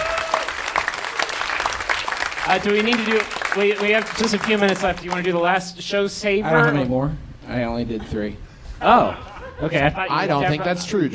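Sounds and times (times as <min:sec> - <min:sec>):
audience applause: 0:00.0 - 0:05.4
speech: 0:02.5 - 0:11.1
laughter: 0:08.0 - 0:11.1.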